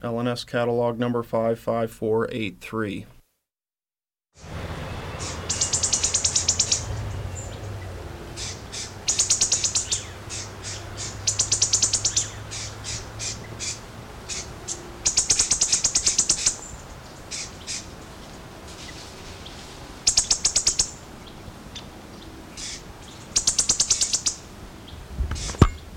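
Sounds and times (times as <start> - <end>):
speech: 0.0 - 3.2
black-chested sparrow trill: 4.9 - 24.5
soft thump: 25.1 - 25.8.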